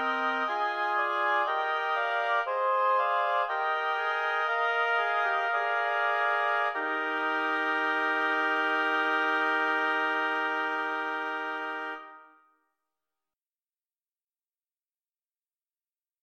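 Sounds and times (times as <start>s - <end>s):
lyrical oboe quartet playing: 0.0s - 12.2s.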